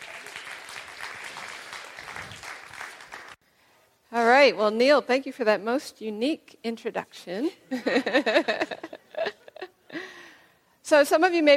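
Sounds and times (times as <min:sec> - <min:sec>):
audience applause: 0:00.0 - 0:03.4
speech: 0:04.4 - 0:09.0, 0:10.9 - 0:11.5.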